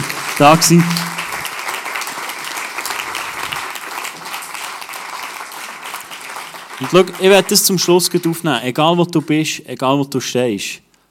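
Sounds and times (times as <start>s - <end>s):
audience applause: 0.0s - 8.0s
speech: 0.4s - 1.1s, 6.8s - 10.9s.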